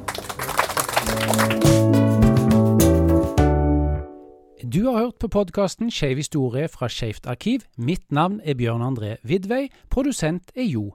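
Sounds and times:
crackly applause: 0.0 - 2.6
bright steady music: 1.0 - 4.6
speech: 4.8 - 10.9.

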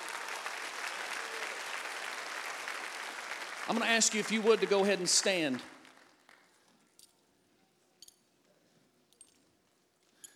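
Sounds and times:
applause from a large group: 0.0 - 6.4
speech: 3.7 - 5.7.

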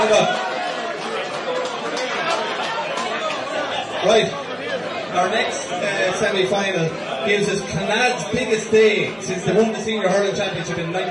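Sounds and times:
speech: 0.0 - 0.4, 4.0 - 4.4, 5.1 - 11.0
crowd chatter: 0.0 - 11.0.

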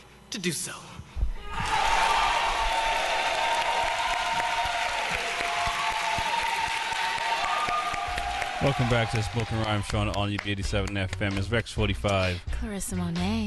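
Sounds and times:
speech: 0.3 - 1.7, 8.6 - 13.4
audience clapping: 1.7 - 12.4.

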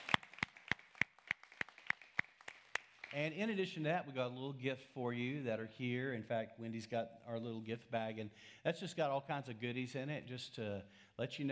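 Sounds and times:
audience applause: 0.0 - 3.2
speech: 3.1 - 11.5.

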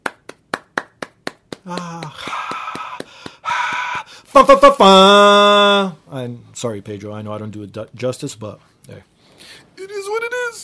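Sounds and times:
steady hand claps from a single person: 0.0 - 4.0
speech: 1.6 - 2.4, 4.4 - 10.6
voice whooping and cheering to imitate an applauding crowd: 1.7 - 5.9.

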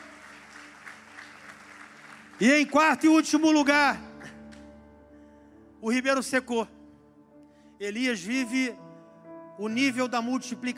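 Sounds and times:
crowd applause: 0.0 - 3.3
speech: 2.4 - 4.1, 5.8 - 6.8, 7.8 - 8.8, 9.6 - 10.7.

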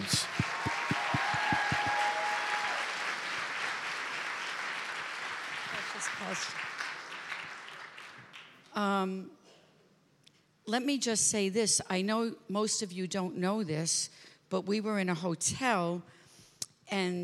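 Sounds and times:
church gathering audience applause welcoming a guest speaker: 0.0 - 8.6
speech: 9.0 - 9.4, 10.7 - 16.2, 16.9 - 17.2.

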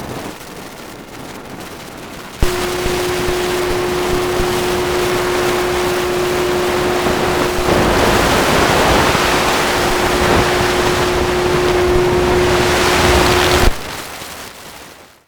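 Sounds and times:
electromagnetic interference hum over dense hiss: 2.4 - 14.0.

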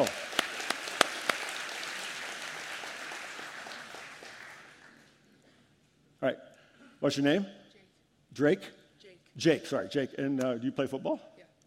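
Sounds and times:
audience cheering and applause: 0.0 - 4.9
speech: 6.2 - 7.6, 8.4 - 8.8, 9.4 - 11.6.

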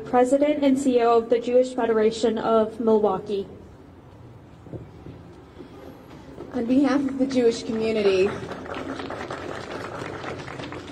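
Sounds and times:
speech: 0.0 - 3.6, 6.6 - 8.9
audience applause: 8.2 - 10.8.

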